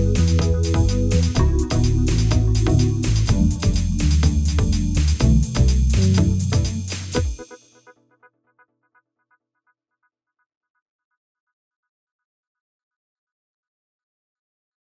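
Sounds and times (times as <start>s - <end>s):
soft dreamy music at 125 bpm: 0.0s - 7.5s.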